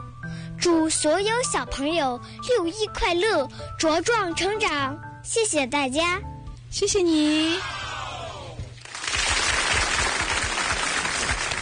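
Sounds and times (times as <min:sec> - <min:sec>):
speech: 0:00.6 - 0:07.9
audience applause: 0:08.8 - 0:11.5.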